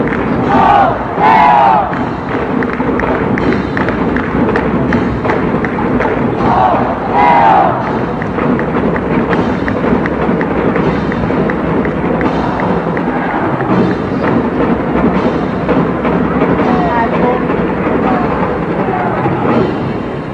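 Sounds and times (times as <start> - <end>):
people cheering: 0.0 - 19.7.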